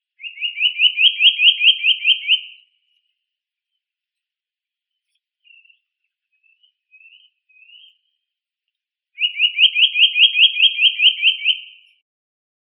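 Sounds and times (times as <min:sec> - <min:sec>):
Eurasian nuthatch Sitta europaea calling: 0:00.2 - 0:02.6, 0:05.4 - 0:08.1, 0:09.2 - 0:12.0.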